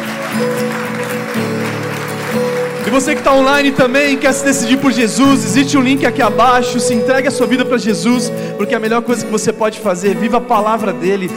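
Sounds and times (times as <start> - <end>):
audience applause: 0.0 - 6.1
speech: 0.4 - 0.8, 2.9 - 11.3.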